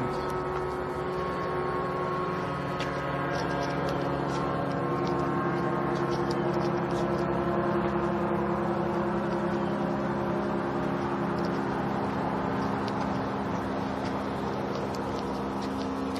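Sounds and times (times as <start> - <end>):
airplane buzzing overhead: 0.0 - 16.1
lawnmowers: 0.0 - 16.1.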